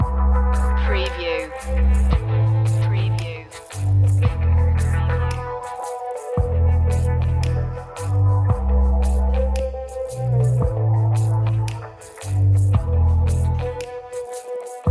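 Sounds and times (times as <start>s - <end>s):
music loop: 0.0s - 14.8s.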